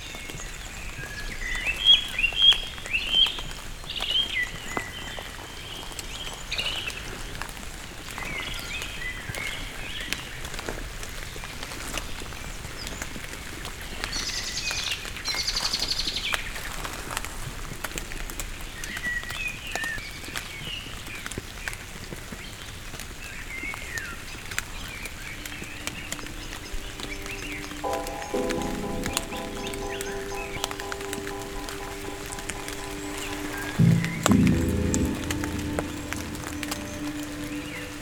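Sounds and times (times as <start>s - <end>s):
rain pattering: 0.0s - 38.0s
birds chirping: 25.4s - 38.0s
low steady hum with clear tones: 25.6s - 38.0s.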